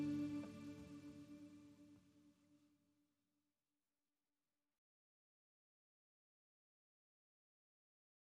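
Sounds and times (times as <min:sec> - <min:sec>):
guitars playing: 0:00.0 - 0:01.4.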